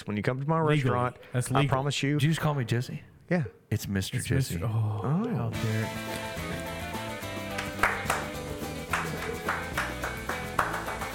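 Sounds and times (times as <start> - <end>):
speech: 0.0 - 6.4
hands clapping: 6.0 - 11.1.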